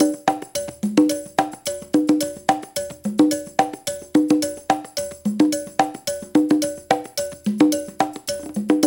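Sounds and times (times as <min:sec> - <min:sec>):
conga at 108 bpm: 0:00.0 - 0:08.8.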